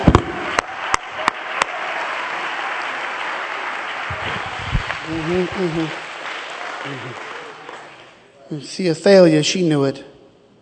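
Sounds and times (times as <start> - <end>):
congregation clapping hands in church: 0.0 - 8.3
speech: 5.1 - 6.0, 6.8 - 7.3, 8.5 - 10.1.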